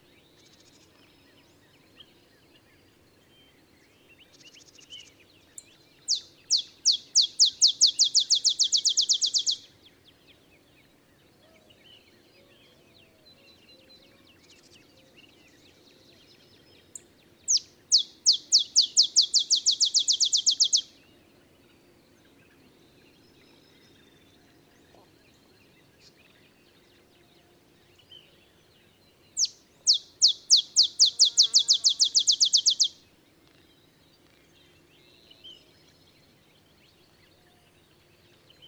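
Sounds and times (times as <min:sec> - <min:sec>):
Olive sparrow accelerating chip song: 0:06.0 - 0:09.7, 0:17.0 - 0:21.0, 0:29.4 - 0:33.0.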